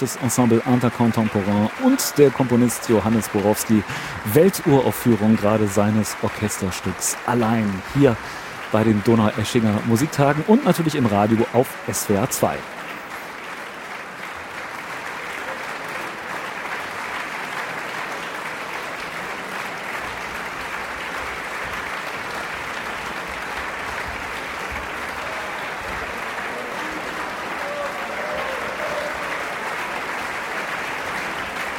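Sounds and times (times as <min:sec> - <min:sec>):
speech: 0:00.0 - 0:12.8
concert hall applause: 0:00.0 - 0:31.7.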